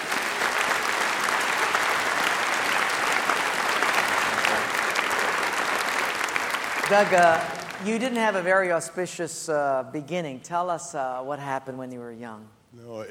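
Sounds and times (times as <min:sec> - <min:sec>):
audience applause welcoming a guest onto the stage: 0:00.0 - 0:08.5
speech: 0:06.9 - 0:13.0.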